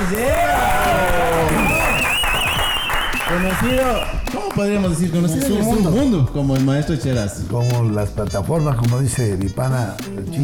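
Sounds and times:
whoops and whistle-like cheers: 0.0 - 4.1
audience applause welcoming a guest: 0.0 - 4.7
speech: 0.1 - 0.4, 3.4 - 10.4.

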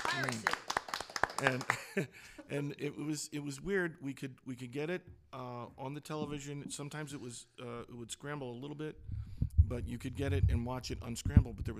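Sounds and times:
golf clap, quiet polite clapping: 0.0 - 2.0
speech: 0.2 - 0.6, 1.4 - 11.7.

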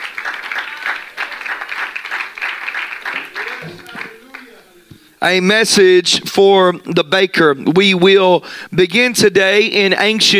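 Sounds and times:
audience clapping hands: 0.0 - 4.8
speech: 5.2 - 10.3.

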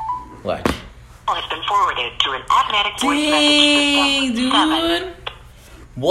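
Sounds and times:
speech: 0.4 - 5.2
tinny voicemail voice through a phone handset: 1.3 - 5.1.

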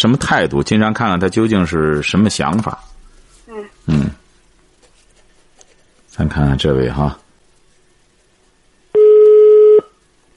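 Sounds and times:
speech: 0.0 - 2.9, 3.6 - 4.2, 6.2 - 7.2
telephone ringback tone: 9.0 - 9.9.

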